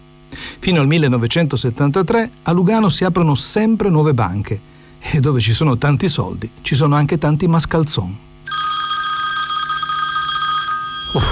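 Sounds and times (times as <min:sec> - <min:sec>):
speech: 0:00.6 - 0:08.3
telephone ringing with an electronic trill: 0:08.4 - 0:11.2.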